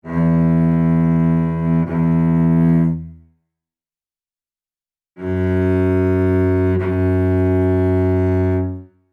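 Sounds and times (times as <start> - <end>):
Celtic cello music: 0.0 - 3.2, 5.2 - 8.9.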